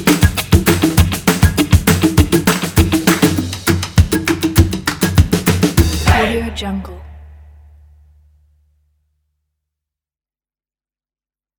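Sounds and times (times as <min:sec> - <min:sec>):
upbeat acoustic percussion: 0:00.0 - 0:07.6.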